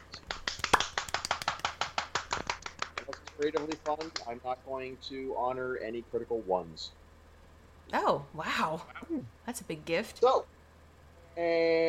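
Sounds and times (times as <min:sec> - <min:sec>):
applause: 0:00.2 - 0:04.3
speech: 0:03.4 - 0:07.0, 0:07.9 - 0:10.6, 0:11.4 - 0:11.8.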